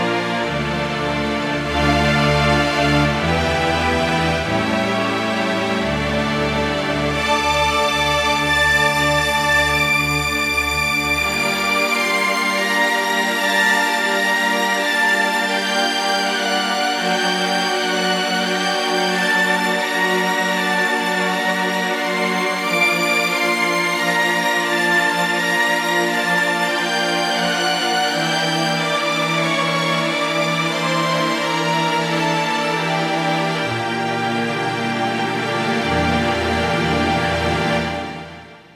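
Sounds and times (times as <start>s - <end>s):
Kurzweil K2000 Grand Strings: 0.0s - 38.7s.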